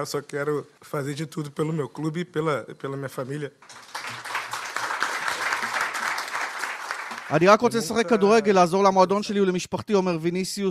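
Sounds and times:
speech: 0.0s - 3.9s, 7.3s - 10.6s
press conference audience applauding: 3.6s - 8.2s.

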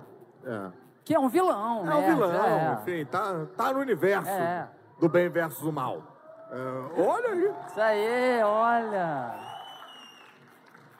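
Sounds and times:
speech: 0.4s - 9.5s
audience applause: 6.6s - 10.9s.

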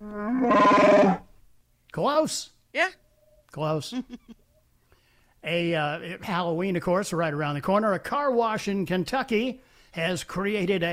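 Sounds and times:
growling creature roar sound effect: 0.0s - 1.2s
speech: 0.4s - 1.2s, 2.0s - 4.4s, 5.4s - 10.9s.

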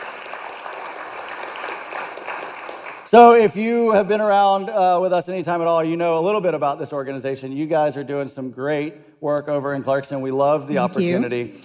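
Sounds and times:
audience crowd applauding: 0.0s - 3.4s
speech: 3.1s - 11.6s.

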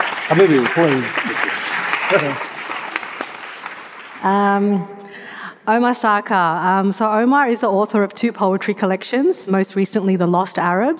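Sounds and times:
audience applause: 0.0s - 4.8s
speech: 0.3s - 1.5s, 2.1s - 2.5s, 4.2s - 10.9s.

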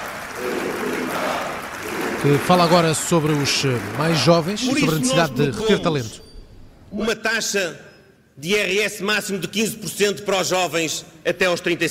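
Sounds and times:
audience applause: 0.0s - 6.0s
speech: 2.2s - 6.3s, 6.9s - 11.8s.

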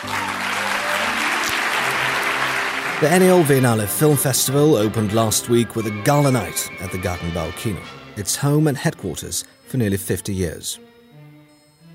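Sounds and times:
audience applause at a film festival gala opening night in Vienna: 0.0s - 5.6s
speech: 3.0s - 10.9s.

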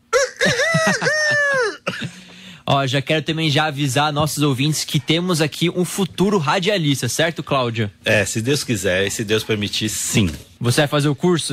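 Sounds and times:
voice imitating a rooster crowing: 0.0s - 1.9s
laughter: 0.2s - 1.9s
speech: 0.9s - 1.5s, 2.7s - 11.5s.

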